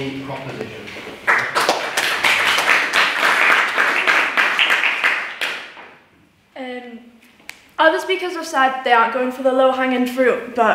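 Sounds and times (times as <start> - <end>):
speech: 0.0 - 1.6, 7.8 - 10.7
debate audience applauding a speaker: 1.3 - 5.8.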